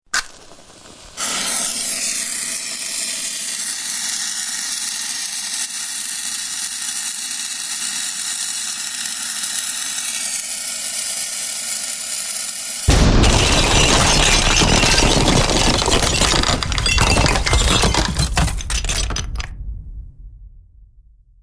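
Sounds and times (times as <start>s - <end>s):
bomb fuse being lit fizzing and burning: 0.0s - 5.7s, 12.8s - 21.1s
bomb exploding: 12.9s - 21.4s.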